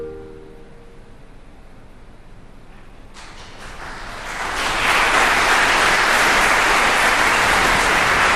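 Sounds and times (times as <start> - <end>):
audience applause after music performance: 3.2 - 8.3.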